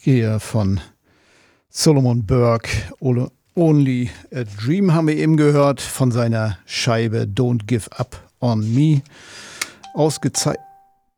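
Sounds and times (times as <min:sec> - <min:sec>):
speech: 0:00.0 - 0:00.9, 0:01.7 - 0:10.7
mobile phone ringing: 0:09.6 - 0:11.0.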